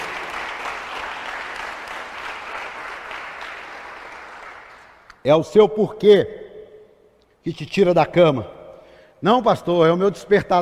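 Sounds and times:
audience applauding: 0.0 - 5.1
speech: 5.2 - 6.4, 7.4 - 8.6, 9.2 - 10.6.

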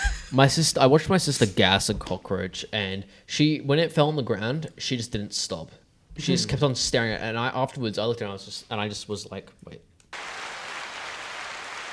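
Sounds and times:
speech: 0.3 - 10.3
hands clapping: 10.1 - 11.9.

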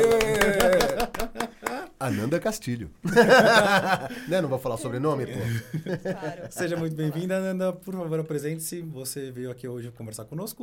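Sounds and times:
audience clapping: 0.0 - 2.0
laughter: 0.0 - 2.3, 3.0 - 7.4
speech: 2.1 - 10.6.

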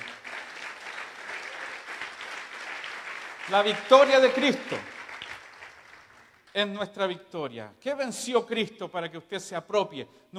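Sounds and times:
loud audience applause: 0.0 - 6.4
speech: 3.5 - 4.9, 6.6 - 10.3.

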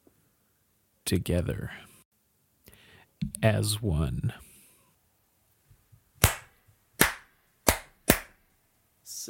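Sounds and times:
speech: 1.1 - 1.9, 3.2 - 4.5
sync hand clap for aligning audio tracks: 6.2 - 8.4.

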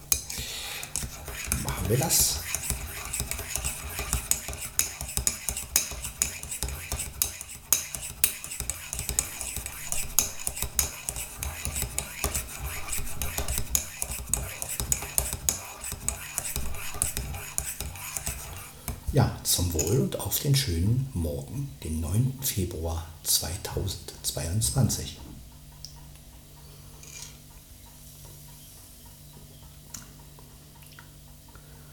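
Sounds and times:
spoon stirring a latte in a cup: 0.0 - 20.2
speech: 1.9 - 2.5, 20.3 - 25.3.

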